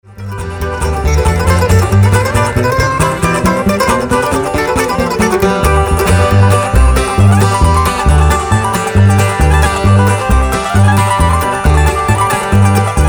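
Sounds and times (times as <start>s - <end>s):
polka music: 0.0s - 13.0s.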